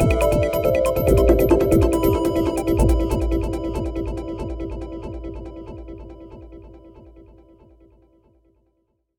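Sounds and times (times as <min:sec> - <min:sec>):
sequenced external effects from an Evolution EVS-1 synthesizer: 0:00.0 - 0:06.1.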